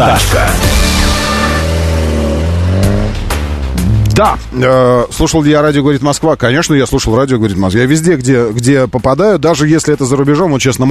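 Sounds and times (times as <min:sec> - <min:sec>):
car engines revving: 0:00.0 - 0:05.1
speech: 0:04.2 - 0:10.9.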